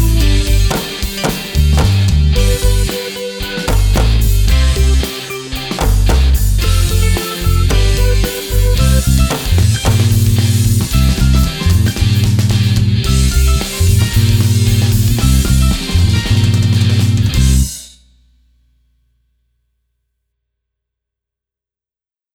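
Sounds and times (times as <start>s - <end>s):
instrumental drumming: 0.2s - 17.4s.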